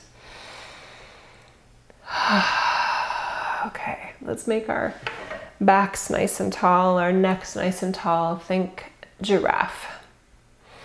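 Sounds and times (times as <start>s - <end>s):
deep breath during a guided relaxation and posture exercise: 0.2s - 3.7s
speech: 2.3s - 2.6s, 3.6s - 10.0s.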